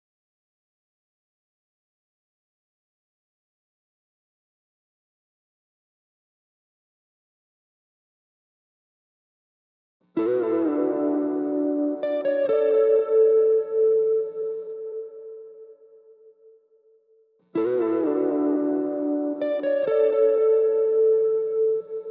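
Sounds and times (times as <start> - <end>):
guitar melody loop in D major at 130 BPM: 10.2 - 16.0, 17.6 - 22.0.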